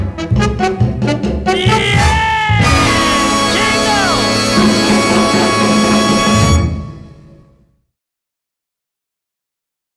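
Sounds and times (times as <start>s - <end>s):
cha cha cha Christmas song: 0.0s - 7.1s.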